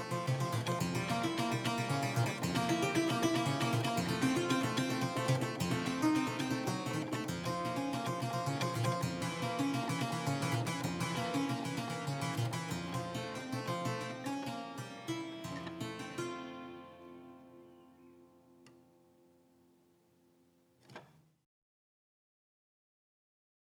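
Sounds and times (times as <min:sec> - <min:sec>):
prelude in C minor: 0:00.0 - 0:18.8.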